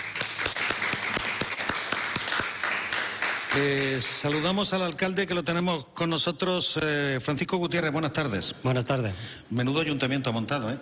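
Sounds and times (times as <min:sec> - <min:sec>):
crowd applauding: 0:00.0 - 0:04.8
speech: 0:03.6 - 0:10.8.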